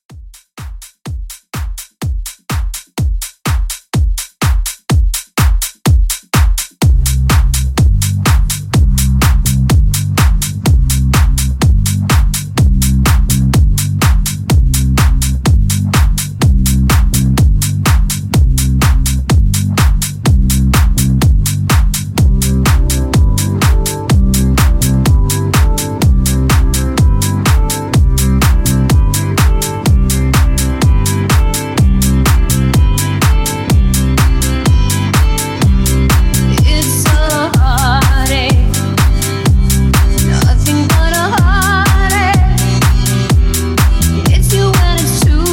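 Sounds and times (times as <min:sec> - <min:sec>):
70s house music: 0:00.0 - 0:45.5.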